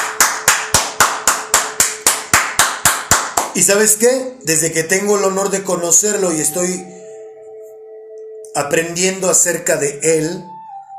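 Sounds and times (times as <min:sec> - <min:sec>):
applause: 0:00.0 - 0:03.6
speech: 0:03.6 - 0:07.0, 0:08.6 - 0:10.6.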